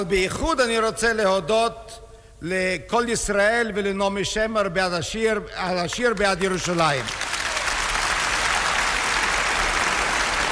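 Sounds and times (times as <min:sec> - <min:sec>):
speech: 0:00.0 - 0:07.3
stormy audience applause: 0:06.6 - 0:10.4.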